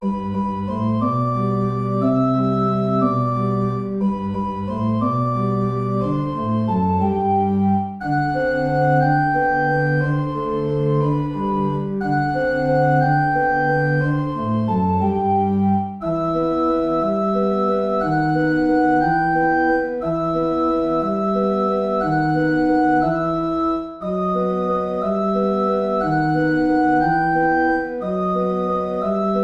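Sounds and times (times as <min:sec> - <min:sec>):
waltz music: 0:00.0 - 0:29.4.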